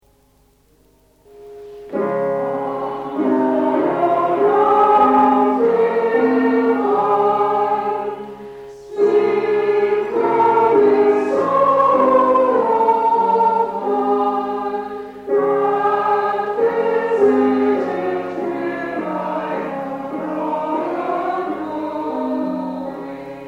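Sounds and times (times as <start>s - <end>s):
hymn: 1.6s - 23.4s.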